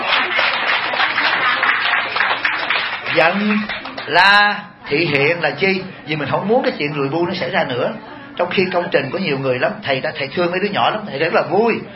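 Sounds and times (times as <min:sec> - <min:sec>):
audience applause at a Buddhist dharma talk: 0:00.0 - 0:04.2
speech: 0:03.2 - 0:11.9.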